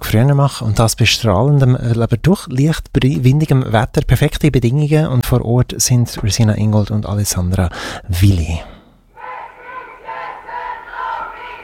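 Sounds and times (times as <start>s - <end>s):
speech: 0.1s - 8.8s
crowd chanting in unison at a demonstration: 9.1s - 11.6s.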